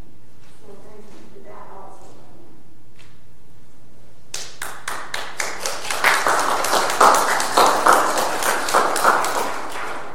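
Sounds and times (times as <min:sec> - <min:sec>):
audience applauding: 0:04.4 - 0:10.1.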